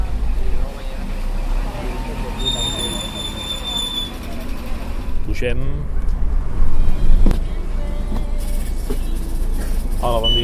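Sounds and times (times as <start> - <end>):
E21 line bus engine rumbling pulling into a stop in Mollet: 0.0 - 10.4
bus brake squeal: 2.1 - 5.1, 8.4 - 10.4
speech: 5.4 - 6.0, 10.0 - 10.4.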